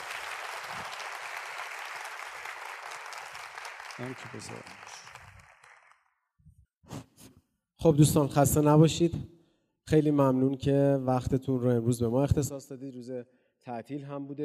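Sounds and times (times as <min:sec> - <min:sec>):
audience applause at the end of a seminar on labour law: 0:00.0 - 0:06.1
speech: 0:04.0 - 0:05.0, 0:07.8 - 0:09.3, 0:09.9 - 0:14.4.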